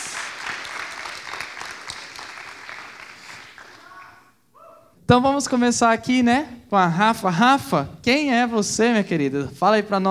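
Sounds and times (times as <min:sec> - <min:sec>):
audience applauding: 0:00.0 - 0:04.2
speech: 0:05.1 - 0:10.0.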